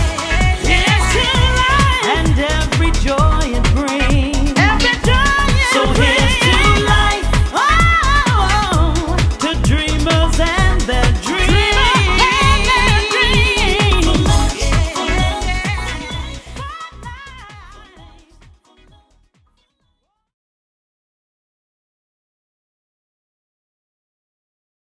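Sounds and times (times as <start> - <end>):
house music: 0.0 - 19.2.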